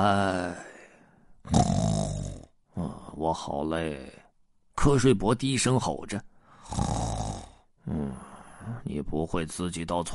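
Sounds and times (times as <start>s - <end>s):
snoring: 1.5s - 2.5s, 6.6s - 8.2s
speech: 3.2s - 4.2s, 4.8s - 6.9s, 7.9s - 10.1s.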